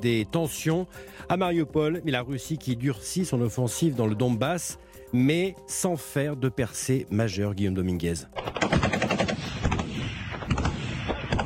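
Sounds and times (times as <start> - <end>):
speech: 0.0 - 8.8
rapid gunfire in combat at the Ukrainian front in Luhansk region: 8.4 - 11.4.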